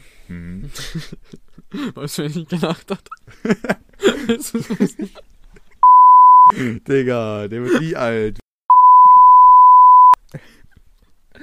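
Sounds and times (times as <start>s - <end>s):
speech: 0.3s - 5.3s, 6.5s - 8.4s
laughter: 0.6s - 1.9s, 2.5s - 5.8s
censor beep bleeping out a name: 5.8s - 6.5s, 8.7s - 10.2s.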